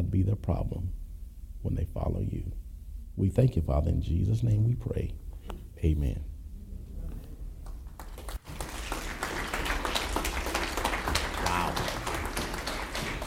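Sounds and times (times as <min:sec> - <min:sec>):
speech: 0:00.0 - 0:01.0, 0:01.6 - 0:02.6, 0:03.2 - 0:05.2, 0:05.8 - 0:06.3
audience applause after a sermon: 0:07.6 - 0:13.2.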